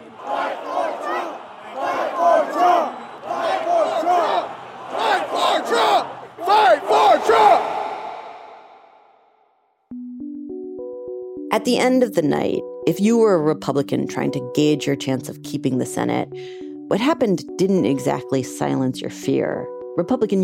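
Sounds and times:
big rally crowd chanting a repeated phrase: 0.0s - 9.4s
speech: 11.6s - 20.4s.

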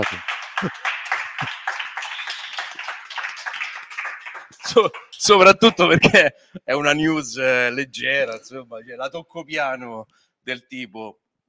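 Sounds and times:
speech: 0.0s - 1.6s, 4.7s - 11.2s
applause: 0.0s - 6.1s
laughter: 0.6s - 1.7s, 4.6s - 7.1s.

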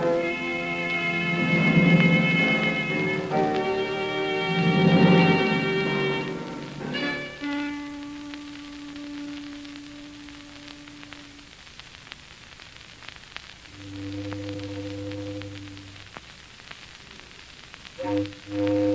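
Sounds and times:
mournful foghorn: 0.0s - 11.4s, 13.7s - 16.0s, 18.0s - 18.9s.

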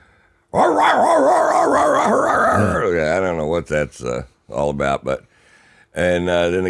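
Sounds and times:
person vocally imitating drug-sniffing dogs yelping on a plane: 0.6s - 2.9s
speech: 0.7s - 5.3s, 5.9s - 6.6s.

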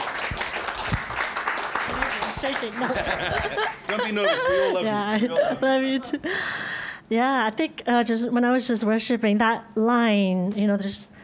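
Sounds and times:
crowd applauding: 0.0s - 4.8s
laughter: 1.9s - 6.4s
speech: 2.4s - 11.1s.

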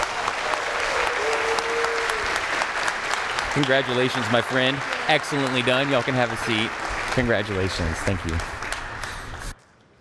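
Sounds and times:
audience applause: 0.0s - 9.6s
speech: 3.6s - 8.6s.

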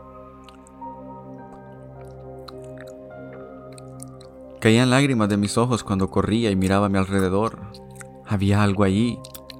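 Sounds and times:
wet squelching clicks: 1.5s - 4.4s, 6.6s - 9.5s
speech: 4.6s - 9.3s.

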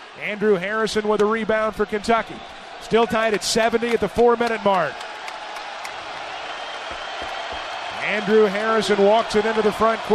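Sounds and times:
basketball arena crowd cheering: 0.0s - 10.1s
speech: 0.2s - 5.0s, 8.1s - 10.1s.

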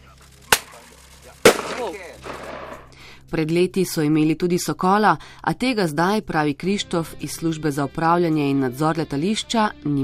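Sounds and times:
flare hissing and crackling: 0.0s - 3.0s
bird-scaring flare pistol bangs: 0.5s - 0.8s, 1.4s - 2.9s
speech: 1.8s - 2.3s, 3.3s - 10.0s.

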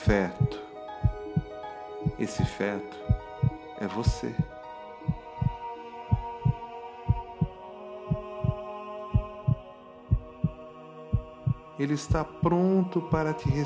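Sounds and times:
heartbeat thumps: 0.0s - 1.5s, 2.1s - 8.6s, 9.2s - 10.6s, 11.2s - 12.5s
speech: 0.1s - 0.6s, 2.2s - 3.2s, 3.8s - 4.5s, 11.8s - 13.6s.

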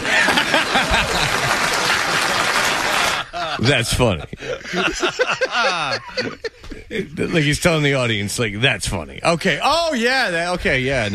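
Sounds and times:
crowd applause: 0.0s - 3.6s
laughter: 0.0s - 7.6s
speech: 3.6s - 11.1s.

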